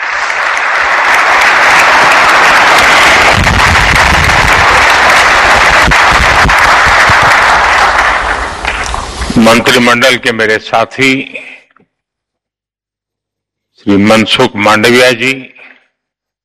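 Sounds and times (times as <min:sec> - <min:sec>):
thunderous audience applause: 0:00.0 - 0:10.4
speech: 0:09.4 - 0:11.5, 0:13.8 - 0:15.5.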